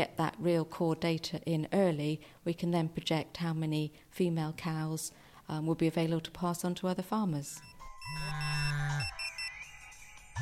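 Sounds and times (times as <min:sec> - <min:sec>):
speech: 0:00.0 - 0:08.5
mobile phone text alerts in Ethiopia: 0:07.5 - 0:09.7
mobile phone ringtones in Ethiopia: 0:07.6 - 0:10.4.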